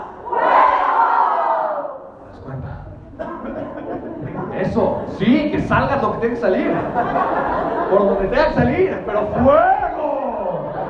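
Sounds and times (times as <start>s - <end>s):
crowd shouting: 0.0s - 2.1s
laughter: 2.8s - 5.1s, 6.6s - 10.8s
speech: 4.7s - 9.7s.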